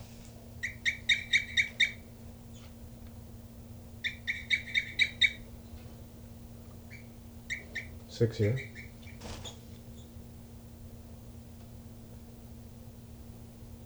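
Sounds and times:
bird calling on its nest: 0.6 - 2.7, 4.0 - 5.4, 6.9 - 10.1
speech: 8.2 - 8.8.

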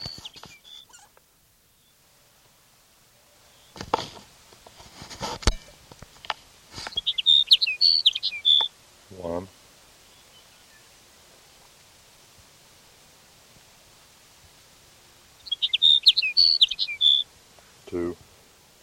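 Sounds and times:
sage sparrow singing: 0.0 - 1.1, 6.8 - 8.8, 15.4 - 17.3
scattered clicks and rustling: 3.8 - 7.0.

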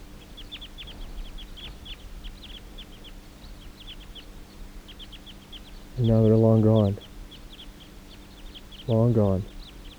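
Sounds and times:
flock of birds chirping: 0.2 - 9.9
speech: 6.0 - 7.1, 8.9 - 9.5.

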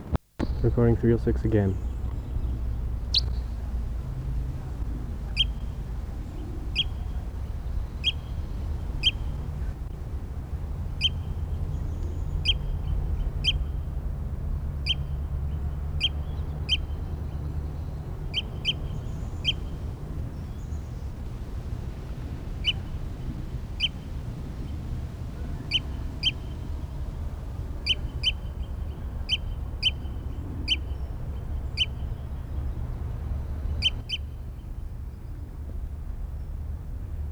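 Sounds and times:
low rumble: 0.0 - 37.2
bird chirping: 0.4 - 34.4
speech: 0.6 - 1.9.

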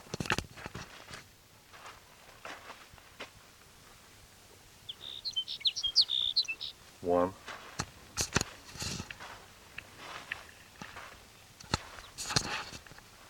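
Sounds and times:
soft footsteps: 0.4 - 4.1, 7.4 - 13.2
rustling scuffs: 0.5 - 4.0, 7.4 - 13.2
sage sparrow singing: 4.8 - 6.8
speech: 7.0 - 7.4.

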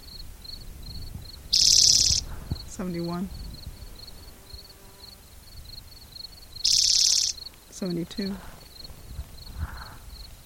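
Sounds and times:
Spotted Towhee buzzy trill: 1.5 - 5.2, 5.9 - 9.6
speech: 2.8 - 3.4, 7.8 - 8.5.

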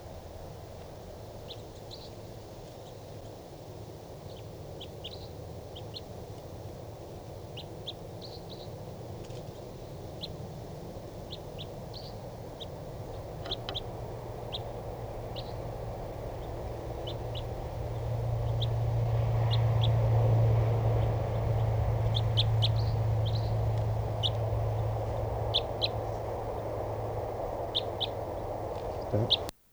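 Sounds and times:
crossbill flock calling: 11.0 - 29.5.

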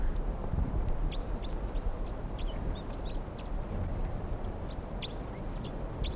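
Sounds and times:
flock of wild birds at a net: 0.9 - 6.1.

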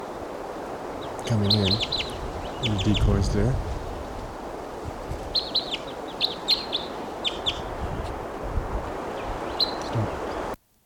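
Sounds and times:
wild bird calling: 0.8 - 4.5, 5.3 - 8.3, 9.0 - 10.6
speech: 1.2 - 3.7.

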